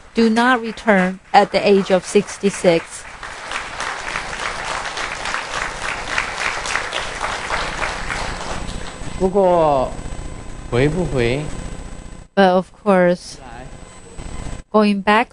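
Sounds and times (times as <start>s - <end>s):
crowd applauding: 0.0s - 9.0s
speech: 0.2s - 3.1s, 9.2s - 10.0s, 10.7s - 11.6s, 12.4s - 13.5s, 14.8s - 15.3s.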